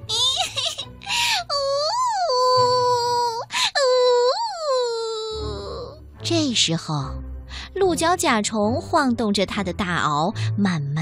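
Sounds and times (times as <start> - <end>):
person imitating a baby owl crying: 1.4 - 6.0
speech: 6.3 - 11.0.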